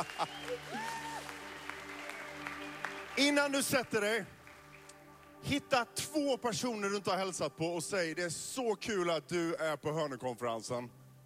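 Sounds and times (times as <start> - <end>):
speech: 0.0 - 1.0, 3.2 - 4.4, 5.4 - 11.0
audience applause: 0.0 - 5.4.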